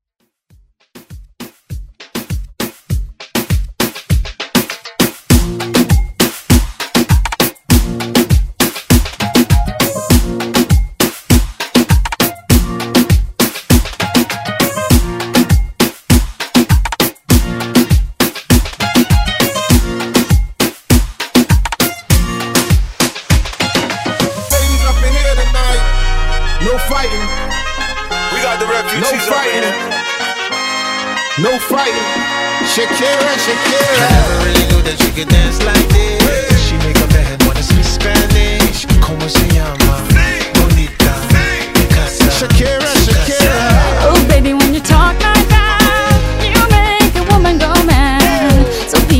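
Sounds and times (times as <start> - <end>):
reggaeton music: 0.9 - 49.1.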